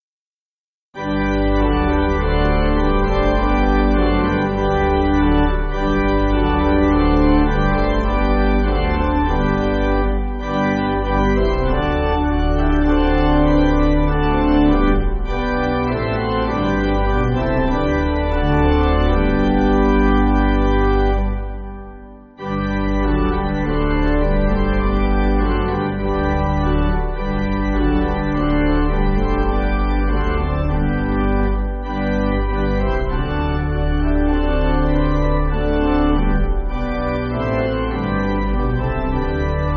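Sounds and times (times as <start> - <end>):
church pipe organ backing: 1.0 - 39.7.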